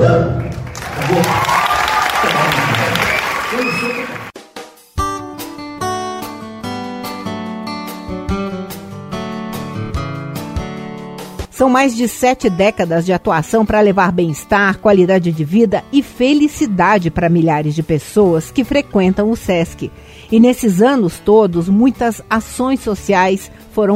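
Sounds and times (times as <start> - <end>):
audience applause: 0.4 - 4.3
cheering voices: 0.8 - 4.3
music with steady notes and sharp rhythmic beats: 4.3 - 11.6
speech: 11.6 - 23.9.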